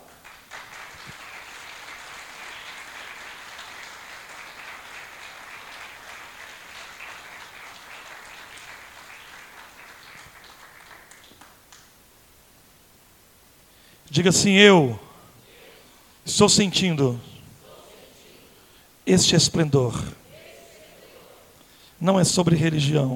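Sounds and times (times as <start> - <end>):
audience applauding: 0.0 - 11.9
speech: 14.1 - 15.0, 16.4 - 17.3, 19.1 - 20.2, 22.0 - 23.1.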